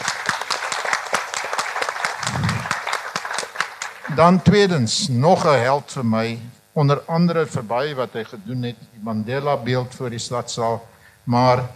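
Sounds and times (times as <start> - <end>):
audience applause: 0.0 - 4.5
speech: 4.2 - 11.7.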